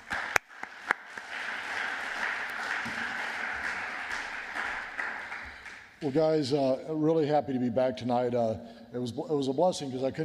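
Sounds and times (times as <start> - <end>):
church congregation applauding to welcome a visiting pastor: 0.0 - 6.5
speech: 6.0 - 10.2.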